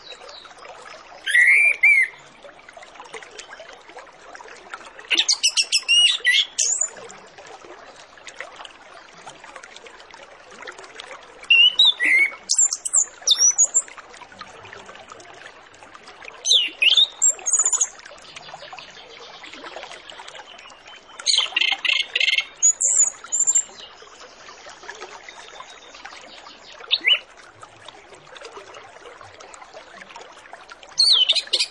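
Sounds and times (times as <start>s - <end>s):
orange-headed thrush song: 1.2s - 2.2s, 5.1s - 7.0s, 11.5s - 13.9s, 16.5s - 27.3s, 31.0s - 31.6s.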